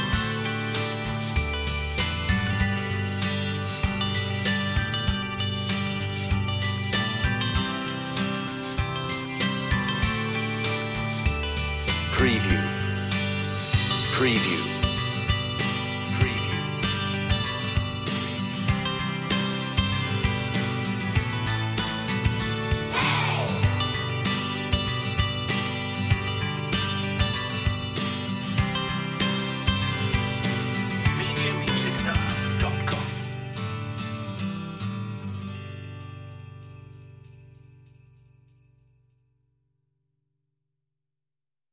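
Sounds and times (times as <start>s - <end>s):
children's music underscore: 0.0s - 34.4s
person shouting hey: 22.9s - 23.8s.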